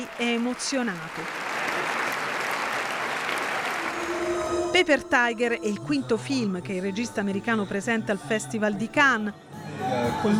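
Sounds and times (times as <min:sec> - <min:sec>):
speech: 0:00.0 - 0:01.5, 0:04.7 - 0:10.3
audience applause after a film screening in the Salle Lumière at Cannes: 0:00.0 - 0:04.6.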